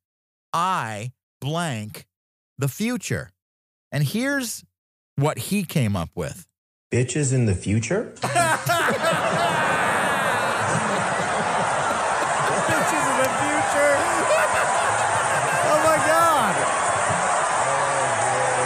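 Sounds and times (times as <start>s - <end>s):
speech: 0.5s - 9.6s
game show studio audience laughter: 8.2s - 16.3s
game show studio audience roaring: 8.2s - 18.6s
voices calling out: 8.3s - 17.4s.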